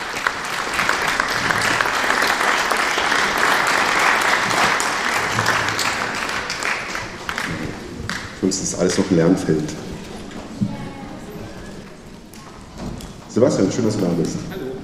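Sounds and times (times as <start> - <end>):
audience applause: 0.0 - 9.7
speech: 8.5 - 9.9, 13.4 - 14.6.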